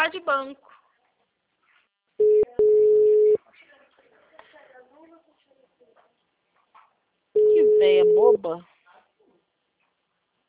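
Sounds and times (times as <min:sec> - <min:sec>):
speech: 0:00.1 - 0:00.8, 0:07.4 - 0:08.7
ringback tone on an outgoing telephone call: 0:02.2 - 0:03.4, 0:07.4 - 0:08.4.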